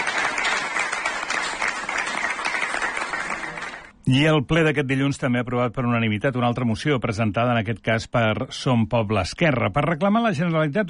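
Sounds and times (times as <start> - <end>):
applause in council chamber: 0.0 - 3.9
speech: 4.1 - 10.8.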